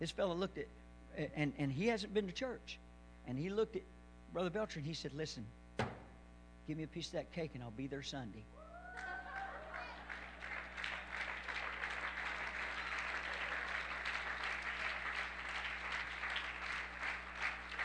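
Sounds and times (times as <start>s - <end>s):
speech: 0.0s - 5.6s, 6.7s - 9.1s
audience clapping: 8.9s - 17.8s.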